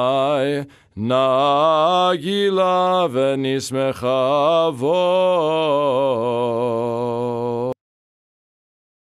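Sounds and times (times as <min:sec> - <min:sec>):
person chanting a prayer in Ukrainian Dorian mode in a lower voice: 0:00.0 - 0:07.8.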